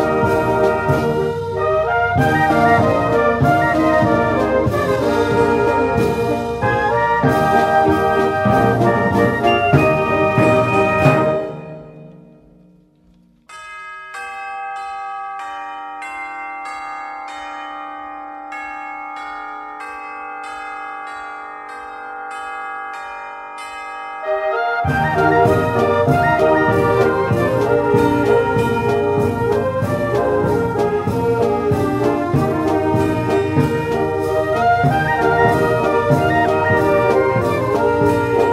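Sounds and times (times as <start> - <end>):
fanfare march: 0.0 - 12.6, 24.2 - 38.5.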